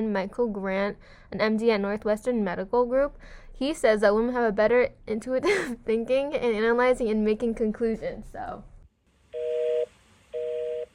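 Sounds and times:
speech: 0:00.0 - 0:08.7
telephone call-in signal tone bursts: 0:09.4 - 0:10.9.

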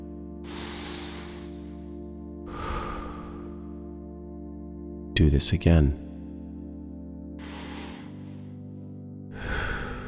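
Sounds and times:
deep breath in through the nose and out through the mouth: 0:00.0 - 0:04.0, 0:07.4 - 0:10.0
speech: 0:05.2 - 0:06.0.

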